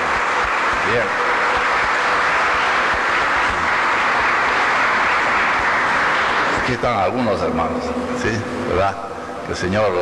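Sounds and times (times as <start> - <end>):
audience applause: 0.0 - 10.0
speech: 0.9 - 1.3, 6.7 - 10.0.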